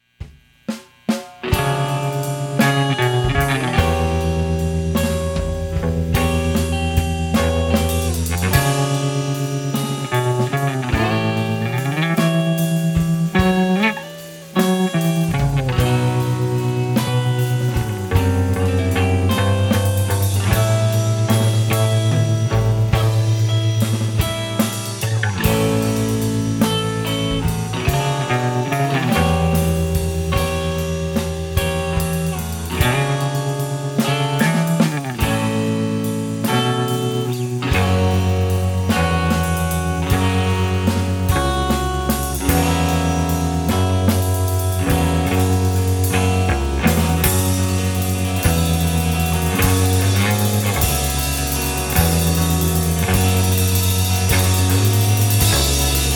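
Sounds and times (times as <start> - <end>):
instrumental reprise: 0.0 - 56.1.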